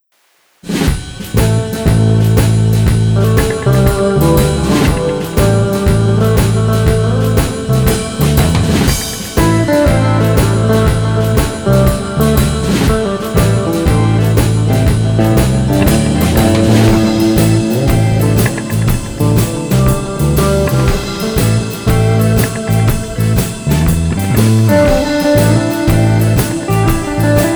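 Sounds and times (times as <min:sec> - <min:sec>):
jazzy blues lounge music: 0:01.3 - 0:27.5.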